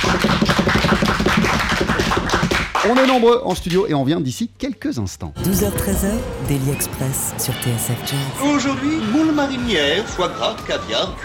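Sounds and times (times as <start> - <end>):
studio audience applauding: 0.0 - 4.0
speech: 2.9 - 11.2.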